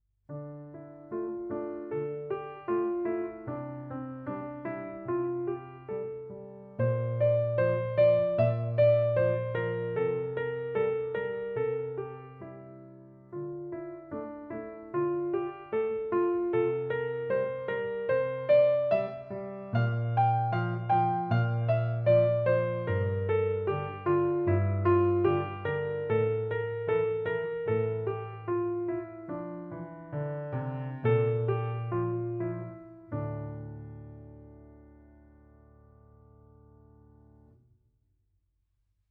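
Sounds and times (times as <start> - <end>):
piano: 0.0 - 37.7.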